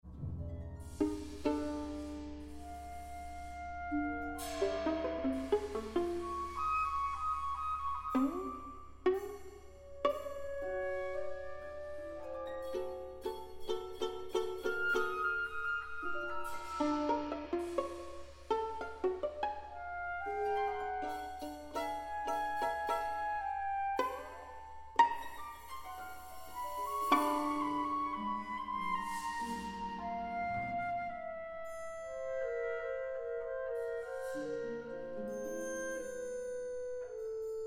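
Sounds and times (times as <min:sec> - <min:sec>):
violin concerto: 0:00.1 - 0:37.6.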